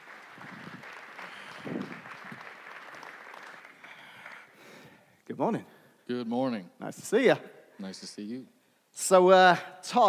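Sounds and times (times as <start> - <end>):
audience applauding: 0.0 - 4.8
speech: 5.3 - 10.0.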